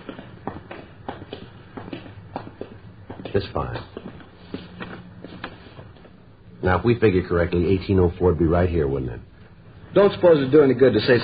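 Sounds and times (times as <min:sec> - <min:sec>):
footsteps of people walking down a row of houses: 0:00.0 - 0:06.6
low hum: 0:00.0 - 0:11.2
speech: 0:03.3 - 0:04.0, 0:06.6 - 0:09.3, 0:10.0 - 0:11.2.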